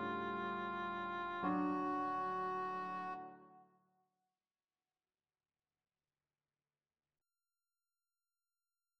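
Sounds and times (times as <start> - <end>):
song accompaniment in D: 0.0 - 3.6.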